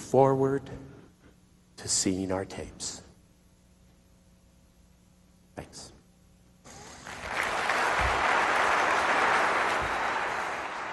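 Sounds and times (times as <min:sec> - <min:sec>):
speech: 0:00.1 - 0:00.9, 0:01.8 - 0:03.0, 0:05.6 - 0:05.9
audience clapping: 0:07.0 - 0:10.9.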